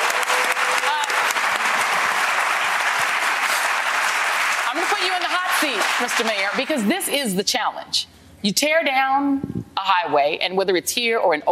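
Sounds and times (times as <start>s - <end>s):
round of applause: 0.0s - 7.0s
speech: 5.6s - 11.5s.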